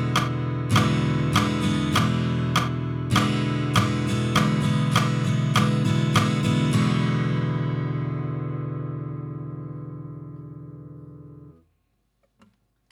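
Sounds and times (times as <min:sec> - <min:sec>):
guitar chords: 0:00.0 - 0:11.7.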